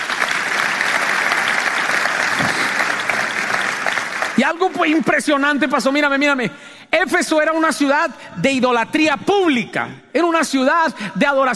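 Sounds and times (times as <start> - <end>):
audience applause: 0.0 - 5.0
speech: 4.4 - 11.5.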